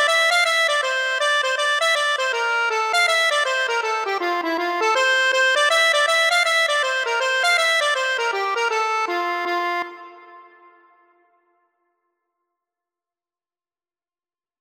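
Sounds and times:
accordion: 0.0 - 11.0.

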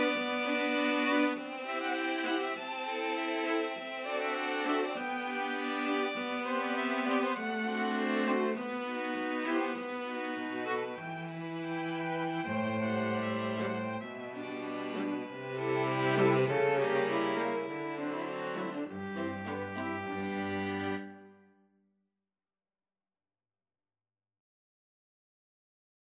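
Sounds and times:
string quartet playing: 0.0 - 21.4.

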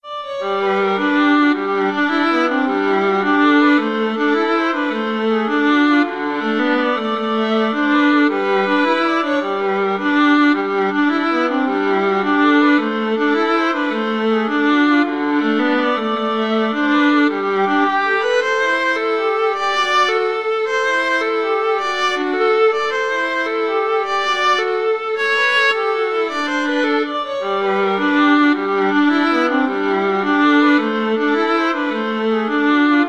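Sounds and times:
violin and viola duet: 0.0 - 33.0.

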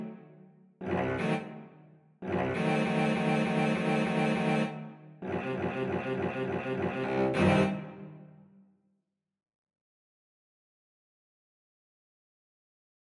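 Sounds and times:
cello duet: 0.8 - 1.6, 2.2 - 8.2.

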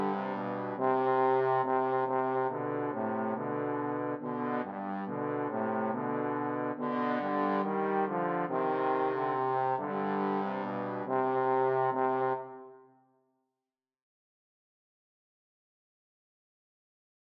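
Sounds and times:
trombone duet playing a siciliana: 0.0 - 12.7.

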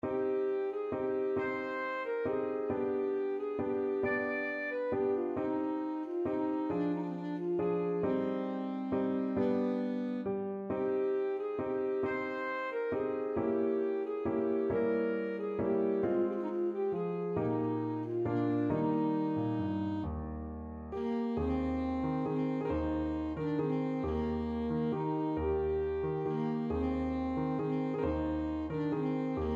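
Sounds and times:
alto saxophone: 0.0 - 29.5.

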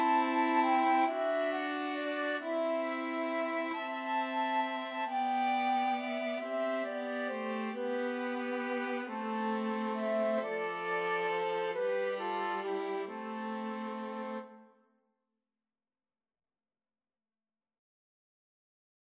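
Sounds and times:
flute: 0.0 - 14.6
violin: 0.0 - 14.6.

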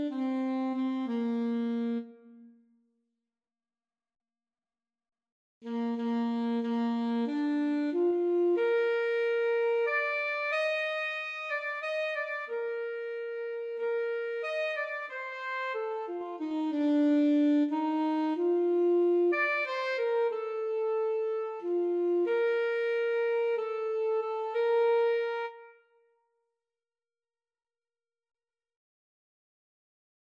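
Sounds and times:
alto saxophone melody: 0.0 - 2.6, 5.6 - 26.0.

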